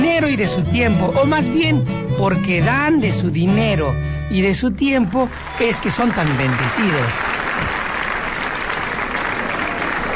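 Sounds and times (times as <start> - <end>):
speech: 0.2 - 7.4
applause: 5.2 - 10.1.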